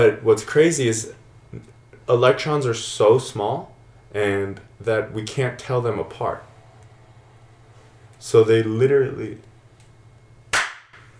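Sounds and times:
speech: 0.0s - 6.5s, 8.2s - 9.5s
clapping: 10.5s - 11.0s.

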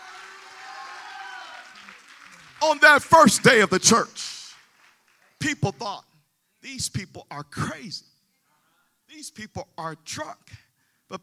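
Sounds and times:
audience clapping hands: 0.0s - 5.9s
speech: 2.6s - 4.3s, 5.4s - 8.1s, 9.1s - 11.2s.

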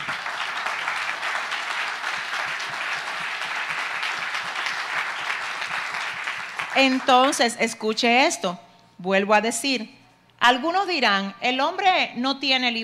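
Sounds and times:
audience applause: 0.0s - 7.4s
speech: 6.8s - 12.8s.

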